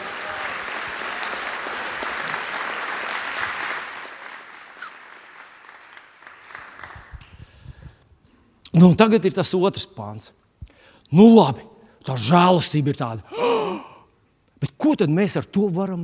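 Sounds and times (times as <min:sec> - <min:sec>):
audience applause: 0:00.0 - 0:07.5
speech: 0:08.8 - 0:10.5, 0:11.1 - 0:13.5, 0:14.9 - 0:16.0.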